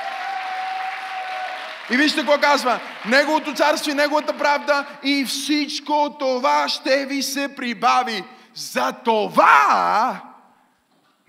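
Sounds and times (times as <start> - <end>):
audience applause: 0.0 - 5.0
speech: 1.9 - 10.3.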